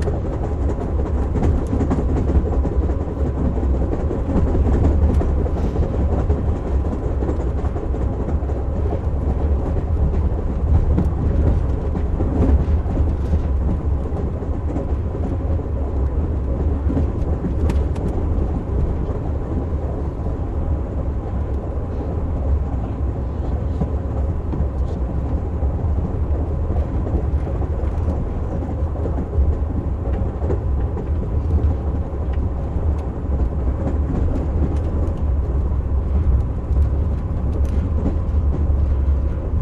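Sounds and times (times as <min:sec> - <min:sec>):
steam train boxcar: 0:00.0 - 0:39.5.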